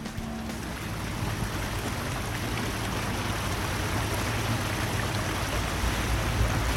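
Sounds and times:
barge low drone: 0.0 - 6.7
rushing water from a travelling barge: 0.0 - 6.7.

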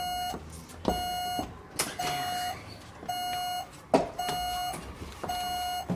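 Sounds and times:
photocopier paper-jam alarm beeping: 0.0 - 5.9.

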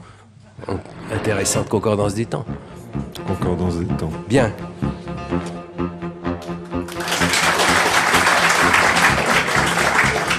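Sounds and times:
speech: 0.6 - 5.6
audience applause: 6.9 - 10.3.

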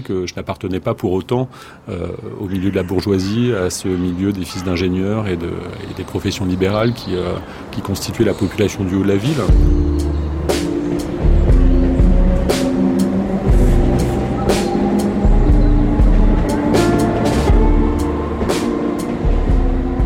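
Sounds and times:
speech: 0.0 - 10.2
low engine drone at Saint-Cloud train station: 9.4 - 20.0.

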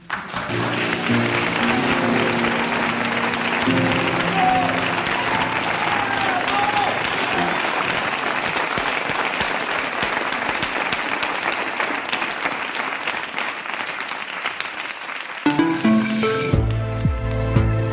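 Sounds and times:
large crowd clapping: 0.0 - 17.8
crowd whooping: 0.5 - 8.3.

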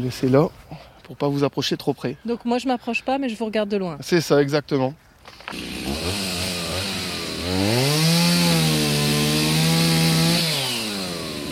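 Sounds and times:
speech: 0.0 - 6.3, 7.5 - 7.9
chainsaw cutting down an ash tree: 5.5 - 11.4.

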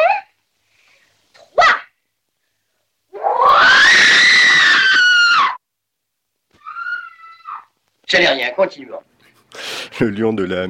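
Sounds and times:
woman screaming: 3.2 - 5.6, 6.6 - 7.8
speech: 8.1 - 9.1, 10.0 - 10.6.

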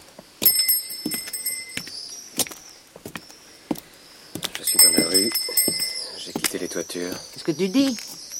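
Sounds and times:
small bell being shaken: 0.5 - 1.9, 4.7 - 6.2
speech: 6.8 - 8.1.

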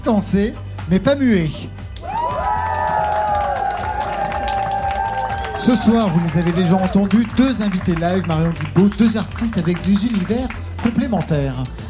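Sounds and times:
speech: 0.1 - 1.8, 5.6 - 11.8
audience whoops and shouts: 2.0 - 7.1
concert audience applauding: 2.0 - 10.8.

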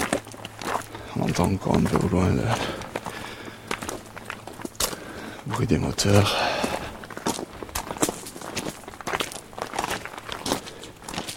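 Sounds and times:
footsteps walking with crunchy scuffs: 0.0 - 11.3
speech: 1.4 - 2.8, 5.5 - 6.6.

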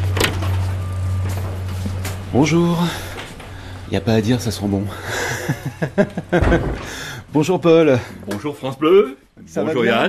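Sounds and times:
shop door being pushed open: 0.0 - 4.0, 6.2 - 7.4
low mechanical hum: 0.0 - 8.4
speech: 2.3 - 3.1, 3.9 - 10.0
laughter: 5.0 - 6.9.

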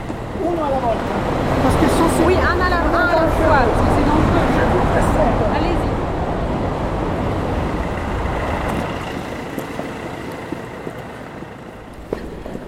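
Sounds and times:
car traffic roaring through a road tunnel: 0.0 - 12.6
speech: 0.4 - 5.6.

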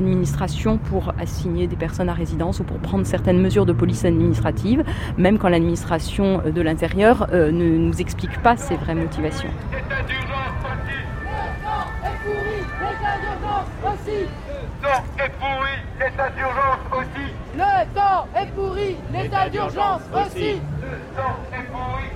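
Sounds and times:
speech: 0.0 - 11.1, 13.1 - 22.1
crowd at a street demonstration murmuring: 7.6 - 22.1.

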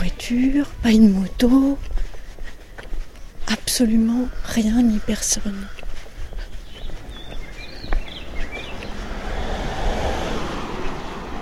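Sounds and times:
speech: 0.1 - 1.9, 3.5 - 5.8
car passing on an empty street: 6.6 - 11.4.

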